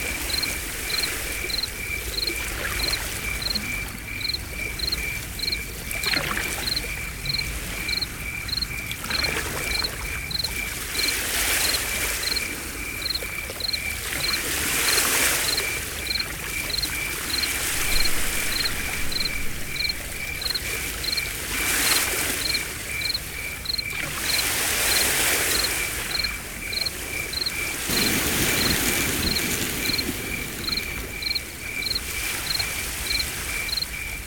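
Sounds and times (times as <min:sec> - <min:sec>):
sea waves: 0:00.0 - 0:34.2.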